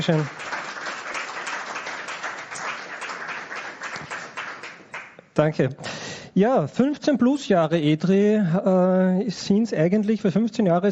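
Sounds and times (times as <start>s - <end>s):
speech: 0.0s - 0.4s, 5.4s - 10.9s
audience applause: 0.0s - 5.2s.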